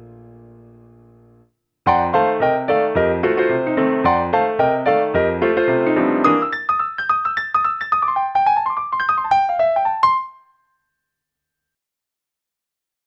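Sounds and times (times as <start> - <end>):
Kurzweil PC361 acoustic piano: 0.0 - 10.4.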